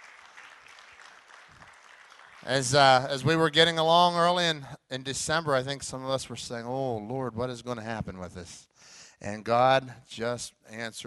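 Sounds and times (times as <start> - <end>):
audience clapping: 0.0 - 3.1
speech: 2.4 - 11.0.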